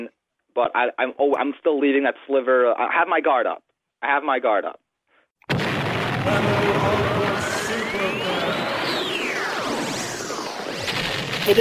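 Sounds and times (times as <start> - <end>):
speech: 0.0 - 4.8, 11.4 - 11.6
explosion sound effect: 5.5 - 11.6
whistling tones: 6.8 - 10.9.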